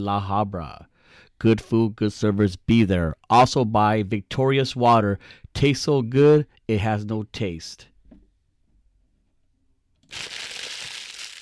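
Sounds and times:
speech: 0.0s - 7.9s, 10.1s - 10.6s
paper script being crumpled: 10.0s - 11.4s.

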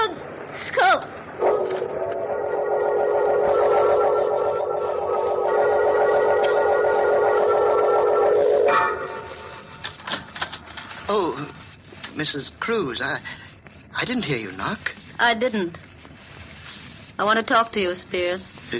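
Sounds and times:
howling wind: 0.0s - 10.0s
speech: 12.2s - 13.4s, 14.0s - 15.8s, 17.2s - 18.7s.

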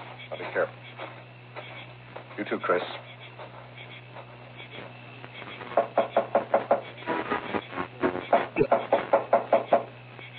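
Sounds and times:
speech: 0.4s - 1.0s, 2.4s - 3.1s
police pounding heavily on a door: 5.8s - 6.9s, 8.3s - 9.9s.

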